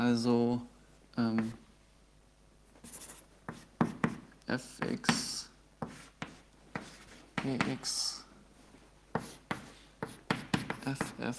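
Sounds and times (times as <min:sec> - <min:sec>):
speech: 0:00.1 - 0:01.6, 0:04.5 - 0:05.3, 0:07.4 - 0:08.2, 0:10.9 - 0:11.3
redrawing a diagram on a board: 0:02.8 - 0:08.1, 0:09.1 - 0:11.3.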